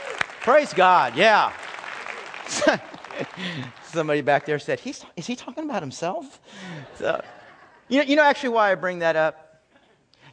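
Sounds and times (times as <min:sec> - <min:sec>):
applause: 0:00.0 - 0:04.8
speech: 0:00.4 - 0:01.6, 0:02.5 - 0:09.4
laughter: 0:02.4 - 0:04.2, 0:06.6 - 0:07.9.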